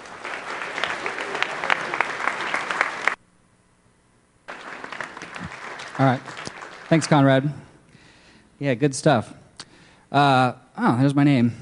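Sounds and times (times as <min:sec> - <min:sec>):
audience round of applause: 0:00.0 - 0:03.2, 0:04.5 - 0:07.5
speech: 0:06.0 - 0:07.6, 0:08.6 - 0:09.4, 0:10.1 - 0:11.5.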